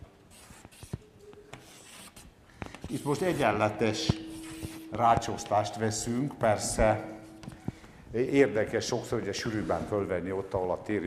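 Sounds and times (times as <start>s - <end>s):
steady hiss: 0.0s - 11.0s
scratchy rubbing strokes of grid lines drawn on a board: 0.2s - 7.6s
speech: 2.9s - 4.2s, 4.9s - 7.2s, 8.1s - 11.0s.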